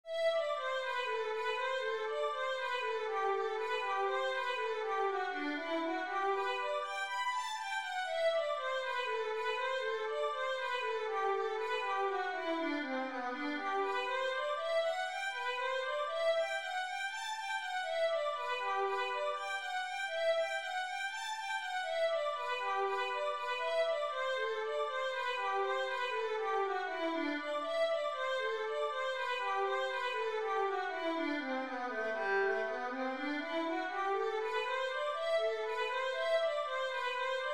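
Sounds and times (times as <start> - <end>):
violin etude: 0.1 - 37.5.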